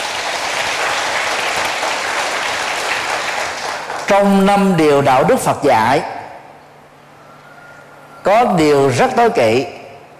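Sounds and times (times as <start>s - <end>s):
loud applause from students: 0.0s - 4.3s
speech: 4.1s - 6.2s, 8.3s - 9.8s.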